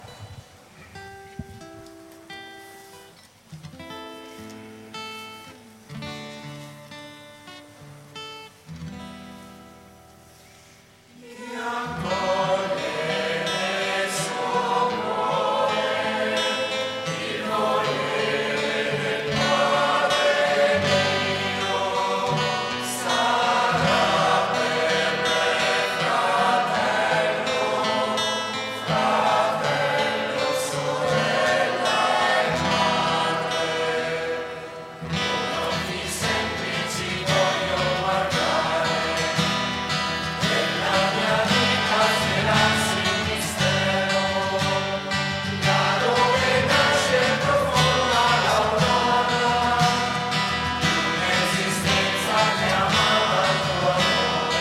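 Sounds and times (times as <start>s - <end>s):
choir singing: 11.2s - 54.6s.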